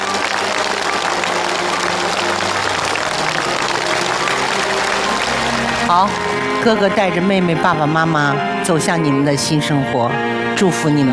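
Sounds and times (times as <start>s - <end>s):
audience applause: 0.0s - 8.2s
speech: 5.9s - 11.1s.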